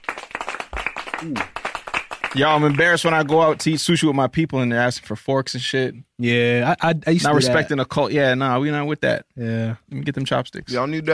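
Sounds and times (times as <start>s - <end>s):
audience applause: 0.0s - 3.8s
person speaking over clapping: 1.0s - 4.1s
speech: 1.2s - 1.6s, 2.3s - 11.1s.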